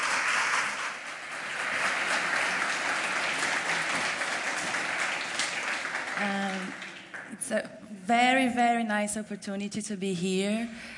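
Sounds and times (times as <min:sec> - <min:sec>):
audience applause: 0:00.0 - 0:07.4
speech: 0:06.2 - 0:06.8, 0:07.4 - 0:10.9.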